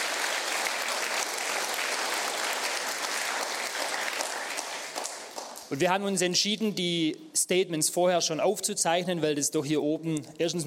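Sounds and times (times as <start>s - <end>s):
audience applause: 0.0s - 5.7s
speech: 5.7s - 10.6s.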